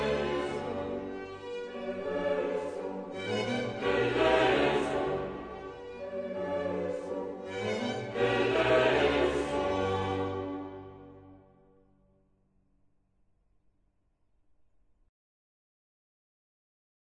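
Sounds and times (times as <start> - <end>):
choral mass in G major: 0.0 - 11.6.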